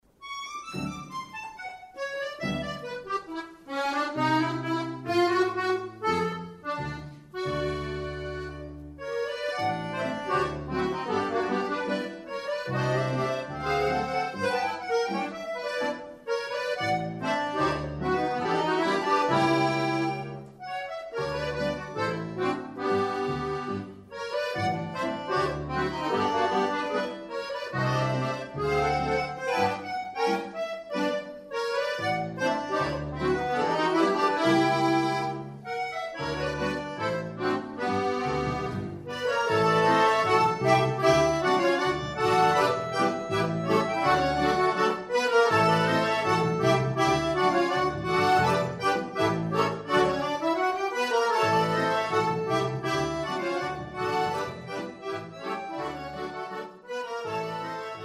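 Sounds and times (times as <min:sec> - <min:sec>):
concert polka music: 0:00.0 - 0:58.0.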